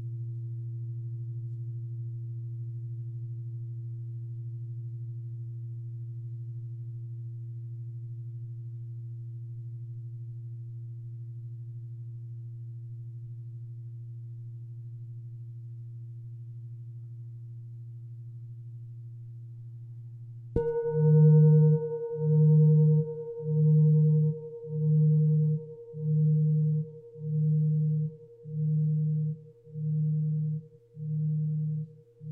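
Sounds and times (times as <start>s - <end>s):
singing bowl ringing: 20.6s - 31.9s.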